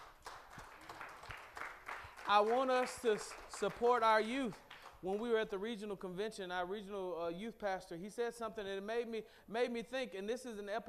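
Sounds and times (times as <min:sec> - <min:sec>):
audience clapping: 0:00.0 - 0:05.4
speech: 0:02.3 - 0:10.8.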